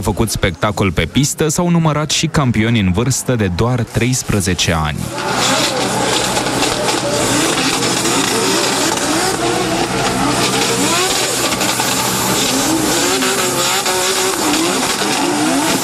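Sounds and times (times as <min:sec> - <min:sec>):
speech: 0:00.0 - 0:06.3
drift car engine revving: 0:05.0 - 0:15.8
drift car tyres squealing: 0:05.1 - 0:15.8.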